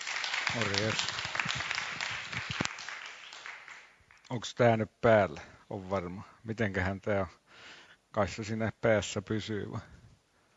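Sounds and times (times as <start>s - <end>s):
crowd applauding: 0.0s - 4.4s
speech: 0.5s - 1.6s, 4.3s - 9.9s.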